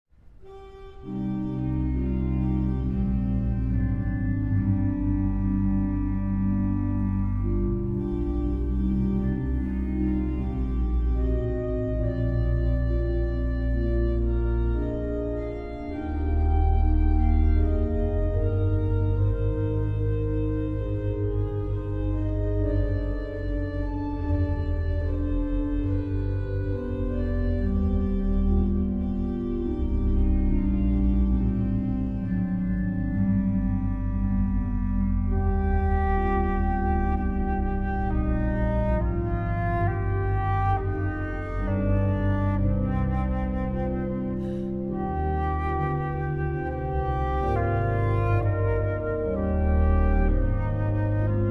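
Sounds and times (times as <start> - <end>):
main organ playing an aria: 0.3 - 51.5
flute playing an aria: 0.4 - 51.5.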